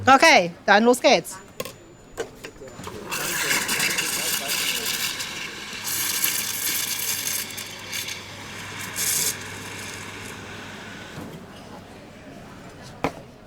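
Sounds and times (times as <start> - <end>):
speech: 0.0 - 1.4
espresso machine steam wand heating oat milk: 2.8 - 11.6.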